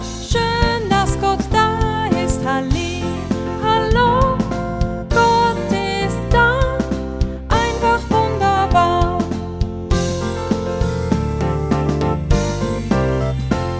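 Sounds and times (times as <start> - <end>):
person singing in German: 0.3 - 13.6.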